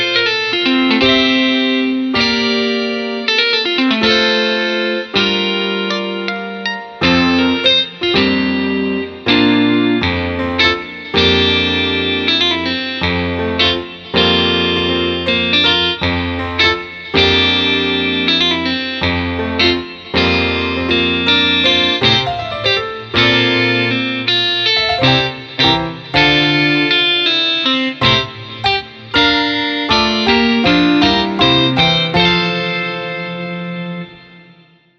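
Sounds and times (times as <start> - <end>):
fashionable and beautiful music: 0.0 - 34.9.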